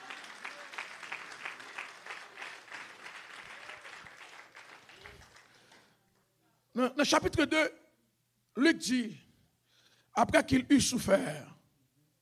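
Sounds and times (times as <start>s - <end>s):
audience applauding: 0.0s - 5.9s
speech: 6.8s - 7.8s, 8.6s - 9.2s, 10.2s - 11.5s.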